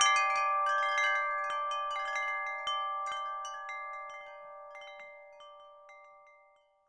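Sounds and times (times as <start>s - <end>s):
wind chimes: 0.0s - 6.8s.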